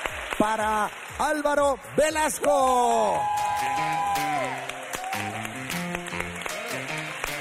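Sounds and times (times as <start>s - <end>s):
group applause: 0.0s - 7.4s
speech: 0.4s - 4.7s
tuneful musical background: 3.2s - 7.4s.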